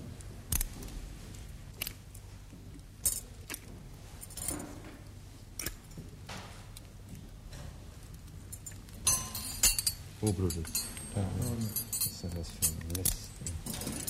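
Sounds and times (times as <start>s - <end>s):
low steady hum: 0.0s - 14.0s
metal surgical instruments clinking and rattling: 8.1s - 14.0s
speech: 10.2s - 13.5s.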